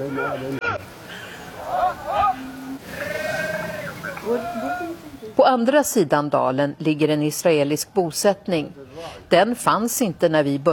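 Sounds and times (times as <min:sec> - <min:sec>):
speech: 0:00.0 - 0:01.0, 0:04.2 - 0:10.7
steady hiss: 0:00.0 - 0:10.7
Palestinian shepherd calling his sheep in a valley: 0:01.7 - 0:05.0.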